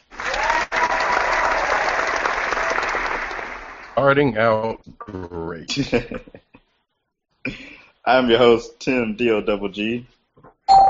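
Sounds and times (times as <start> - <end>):
applause: 0.0 - 4.0
speech: 4.0 - 6.4, 7.4 - 10.2.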